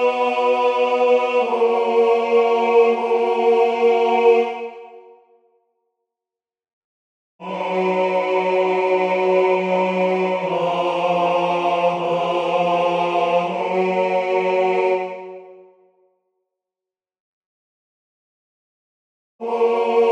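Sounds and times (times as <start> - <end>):
tenor singing: 0.0 - 5.0, 7.4 - 15.4, 19.4 - 20.1.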